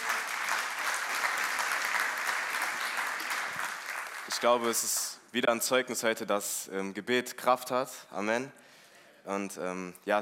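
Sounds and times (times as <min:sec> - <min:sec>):
audience clapping: 0:00.0 - 0:05.2
speech: 0:04.3 - 0:10.2.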